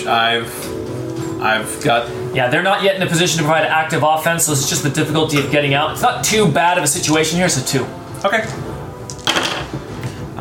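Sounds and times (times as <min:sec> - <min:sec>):
speech: 0:00.0 - 0:08.8
dice rolling: 0:09.1 - 0:09.7.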